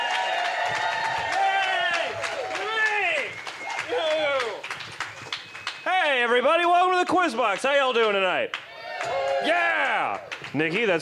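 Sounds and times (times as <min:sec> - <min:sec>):
audience shouting and whooping: 0:00.0 - 0:04.6, 0:08.7 - 0:10.4
comedy quiz show audience clapping: 0:00.0 - 0:11.0
speech: 0:00.7 - 0:01.0, 0:06.2 - 0:11.0.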